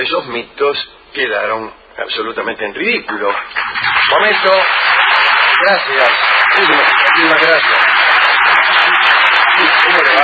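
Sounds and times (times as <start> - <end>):
speech: 0.0 - 4.9, 5.6 - 7.8
audience applause: 3.4 - 10.2.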